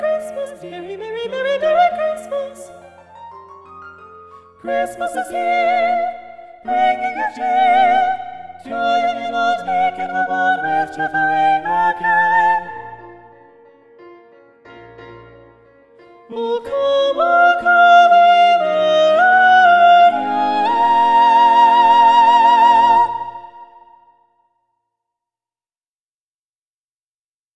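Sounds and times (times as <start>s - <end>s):
four-part SATB choir singing with soprano predominant: 0.0s - 2.8s, 4.6s - 13.6s, 16.3s - 24.0s.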